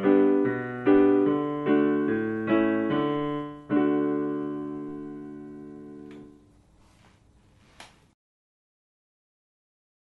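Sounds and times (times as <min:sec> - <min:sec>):
piano accompaniment: 0:00.0 - 0:06.7.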